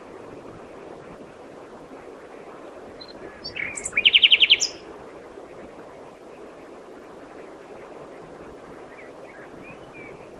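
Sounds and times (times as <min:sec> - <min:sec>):
common nightingale song: 0:03.0 - 0:04.9, 0:08.9 - 0:10.3.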